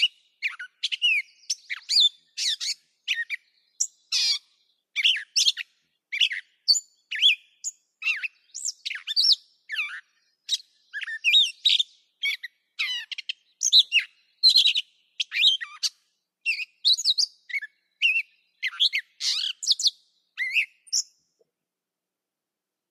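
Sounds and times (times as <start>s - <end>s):
catbird singing mixed squeaky harsh and whistled notes: 0.0s - 21.2s.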